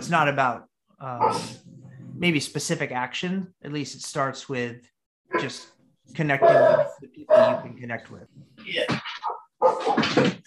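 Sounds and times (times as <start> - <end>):
speech: 0.1 - 10.4
dog barking: 1.2 - 1.6, 6.4 - 7.6, 9.2 - 10.0.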